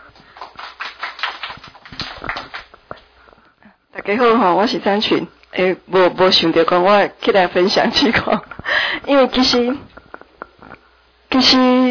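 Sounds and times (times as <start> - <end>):
applause: 0.0 - 2.8
speech: 4.1 - 9.9, 11.4 - 11.8.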